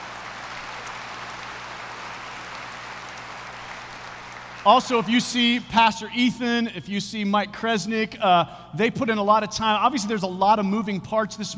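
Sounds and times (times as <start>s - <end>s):
audience applause: 0.0s - 5.6s
speech: 4.6s - 11.5s.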